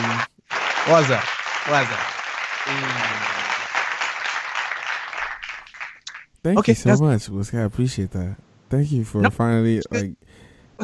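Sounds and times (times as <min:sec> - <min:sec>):
applause: 0:00.0 - 0:06.4
speech: 0:00.8 - 0:03.3, 0:06.4 - 0:10.8.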